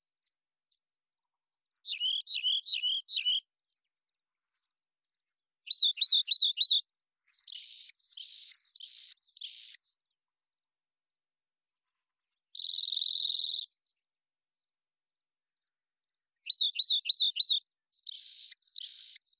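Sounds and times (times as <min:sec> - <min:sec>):
Rock Wren song: 0:01.7 - 0:04.8, 0:05.6 - 0:10.2, 0:12.5 - 0:14.1, 0:16.4 - 0:19.3.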